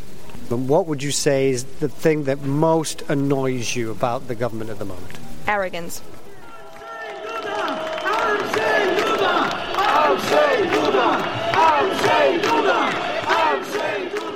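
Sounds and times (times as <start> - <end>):
speech: 0.5 - 6.2
crowd chanting at political campaign rally: 6.4 - 14.3.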